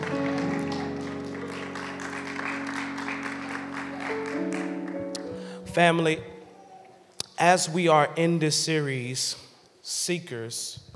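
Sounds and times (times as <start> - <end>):
audience hand clap of praise: 0.0 - 6.3
speech: 5.8 - 6.4, 7.4 - 10.9.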